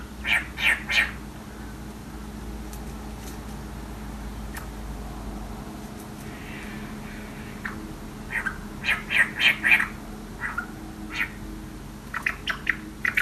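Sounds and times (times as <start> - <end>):
Eastern whipbirds chattering while foraging: 0.0 - 1.9, 6.2 - 13.2.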